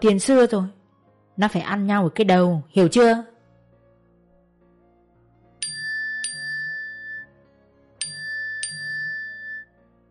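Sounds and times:
speech: 0.0s - 0.8s, 1.4s - 3.3s
phone text message notification chime: 5.6s - 7.3s, 8.0s - 9.7s.

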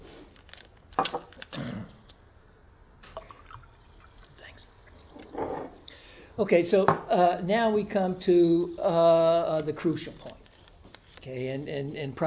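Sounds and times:
water pouring into a glass: 3.1s - 4.3s
speech: 6.4s - 10.4s, 11.2s - 12.2s.

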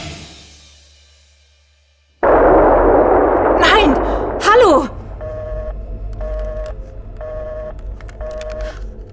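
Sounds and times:
gunshot or explosion blast with rumble: 2.3s - 5.7s
evenly spaced electronic beeps: 2.3s - 8.7s.

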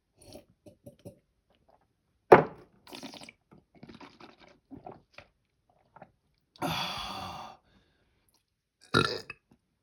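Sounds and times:
person gulping water: 2.9s - 7.0s, 8.9s - 9.4s.

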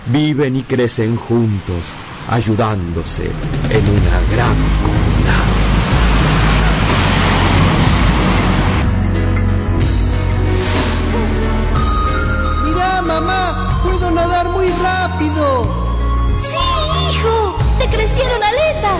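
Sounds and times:
ocean waves: 0.0s - 18.9s
speech: 0.1s - 5.6s.

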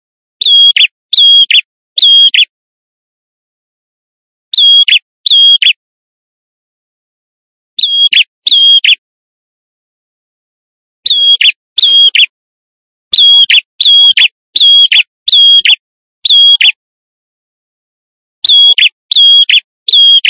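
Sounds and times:
male prinia in vigorous song used as a lure: 0.4s - 2.5s, 4.5s - 5.8s, 7.8s - 9.0s, 11.1s - 12.3s, 13.1s - 16.8s, 18.4s - 20.2s.

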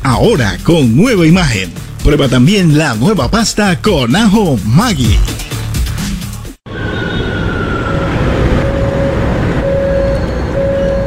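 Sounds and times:
speech: 0.1s - 5.4s
subway train: 6.7s - 11.0s.

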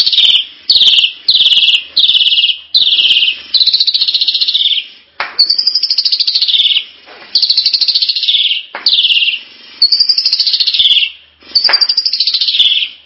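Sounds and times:
starling singing whistles, chips and squeaks: 0.0s - 13.0s.

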